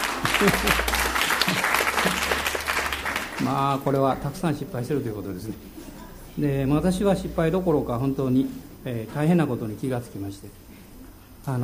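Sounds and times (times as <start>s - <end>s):
people laughing: 0.0s - 3.3s
crowd applause: 0.0s - 4.0s
speech: 0.4s - 1.0s, 3.5s - 5.8s, 6.4s - 10.6s.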